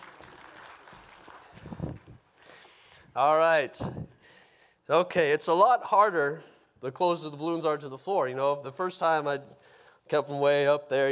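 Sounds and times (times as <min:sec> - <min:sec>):
audience applause: 0:00.0 - 0:02.3
speech: 0:03.2 - 0:04.1, 0:04.9 - 0:11.0.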